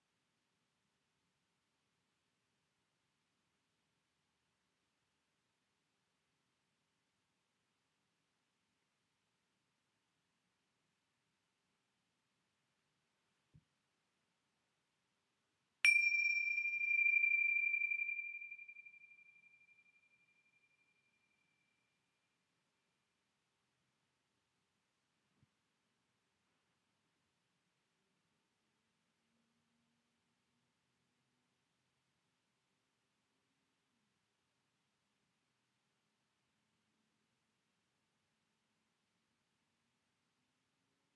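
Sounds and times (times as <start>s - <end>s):
bells: 15.9s - 21.2s.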